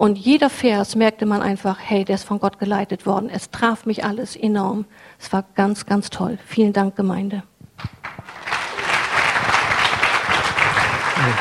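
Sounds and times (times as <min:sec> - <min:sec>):
speech: 0:00.0 - 0:08.4, 0:11.2 - 0:11.3
audience applauding: 0:07.8 - 0:11.3.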